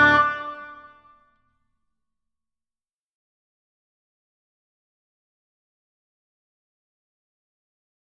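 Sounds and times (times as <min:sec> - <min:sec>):
instrumental music: 0:00.0 - 0:01.0.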